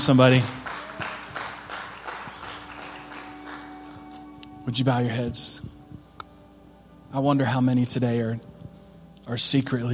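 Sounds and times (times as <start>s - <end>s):
speech: 0.0s - 0.6s, 4.7s - 5.7s, 7.1s - 8.5s, 9.3s - 9.9s
audience applause: 0.0s - 4.0s.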